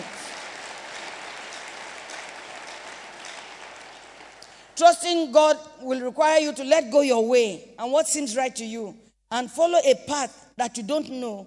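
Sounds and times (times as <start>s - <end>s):
audience clapping: 0.0s - 4.8s
speech: 4.8s - 11.4s.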